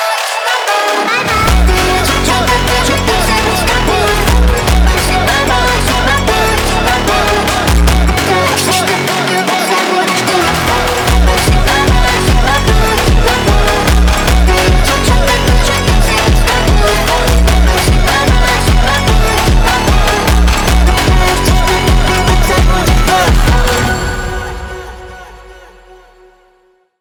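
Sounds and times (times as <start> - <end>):
ultrafunk Brazilian phonk music: 0.0 - 26.2.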